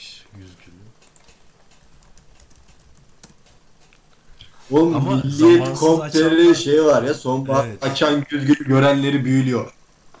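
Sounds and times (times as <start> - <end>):
image search query typed on a computer keyboard: 1.0 - 4.0
speech: 4.7 - 9.8.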